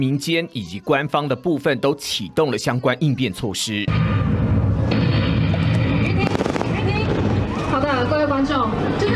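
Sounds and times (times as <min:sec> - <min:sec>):
speech: 0:00.0 - 0:04.3, 0:08.4 - 0:09.1
simulated bombing explosion in drill: 0:03.9 - 0:07.8.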